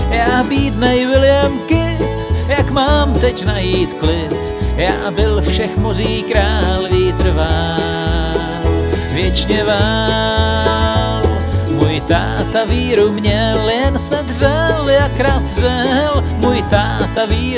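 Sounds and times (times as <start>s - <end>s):
autoharp playing: 0.0s - 17.5s.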